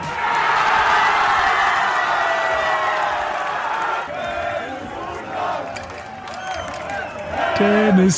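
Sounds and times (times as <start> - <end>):
football fans in Leipzig cheering Germany's World Cup win: 0.0 - 8.1
crowd chatter: 2.5 - 8.1.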